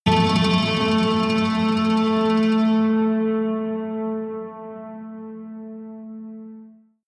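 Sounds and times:
high synth hit rattle: 0.1s - 3.3s.

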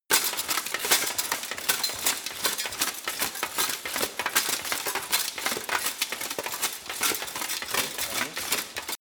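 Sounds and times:
running footsteps: 0.1s - 8.9s.

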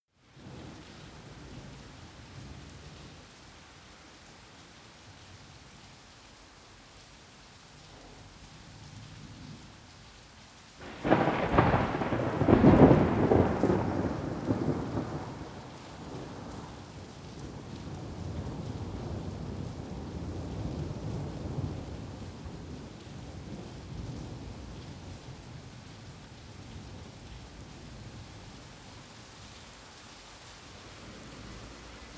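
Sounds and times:
rain in a suburb: 0.1s - 32.1s
thunder in a suburb: 10.8s - 25.3s.

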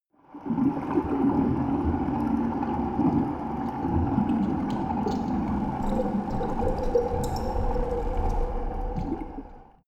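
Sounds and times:
water sound effects: 0.3s - 9.8s.

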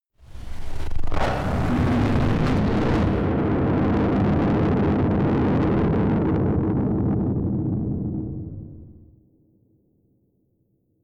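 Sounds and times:
distorted explosions: 0.2s - 9.0s.

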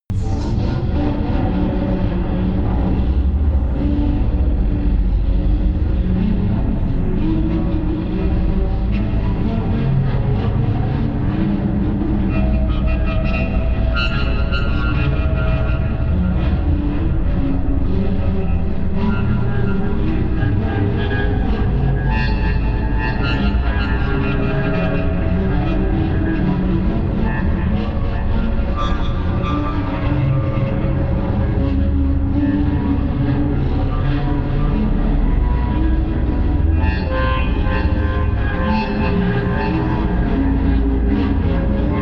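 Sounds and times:
industrial drone: 0.1s - 42.0s.

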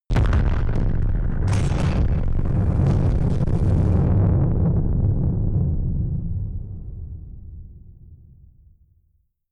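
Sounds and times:
distorted explosions: 0.1s - 7.1s.

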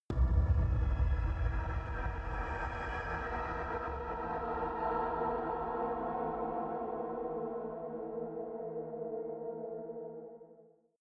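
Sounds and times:
evil horror sub atmosphere: 0.1s - 8.8s.

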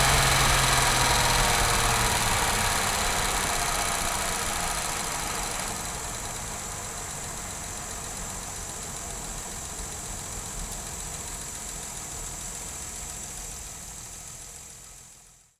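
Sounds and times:
Jaguar E-Type car engine accelerating and decelerating: 0.0s - 8.7s.

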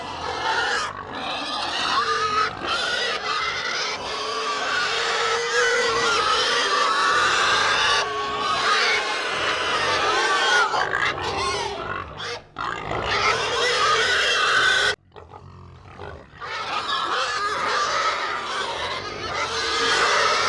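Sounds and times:
pig herd grunting and squealing: 0.0s - 20.4s.

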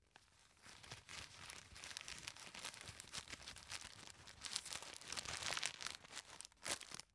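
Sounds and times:
tissue in package rustling: 0.2s - 7.1s.

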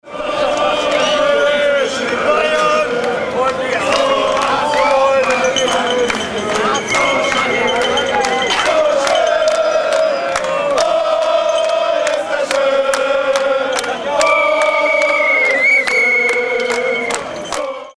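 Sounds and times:
soccer fans in Germany: 0.0s - 17.9s.

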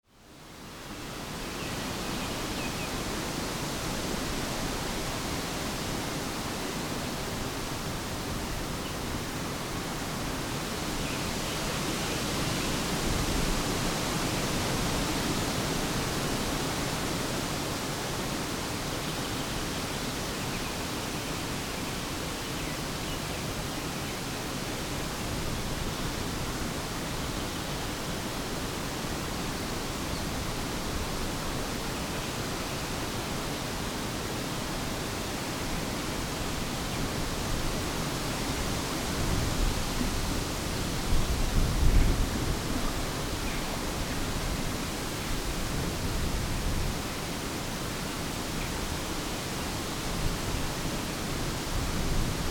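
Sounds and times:
wind in lime trees: 0.0s - 52.4s.

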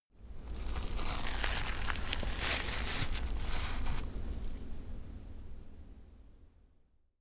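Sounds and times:
clothing brushing against branches: 0.5s - 4.6s.

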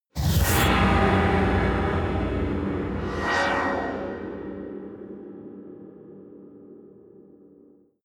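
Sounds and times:
sci-fi whoosh hit: 0.1s - 5.7s.

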